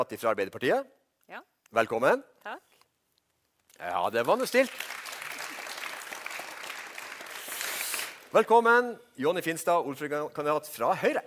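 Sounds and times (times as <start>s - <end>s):
speech: 0.0s - 2.7s, 3.8s - 5.0s, 8.3s - 11.2s
audience applauding Labour Party mayoral candidate at election debate in Vestvågøy: 3.8s - 8.5s.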